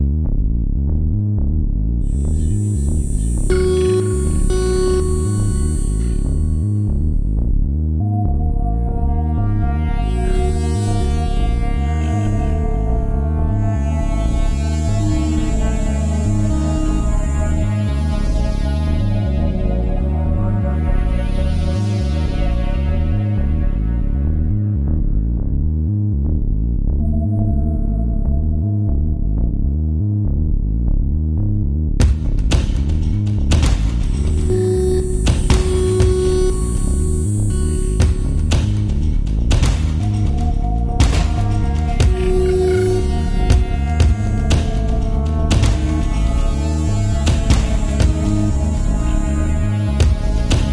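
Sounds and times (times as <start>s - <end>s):
pulsing soundscape: 0.0s - 31.4s, 32.0s - 50.7s.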